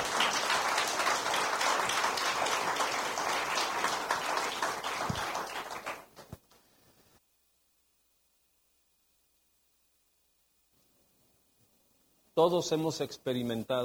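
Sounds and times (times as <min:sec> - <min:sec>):
audience applause: 0:00.0 - 0:06.4
speech: 0:12.4 - 0:13.8.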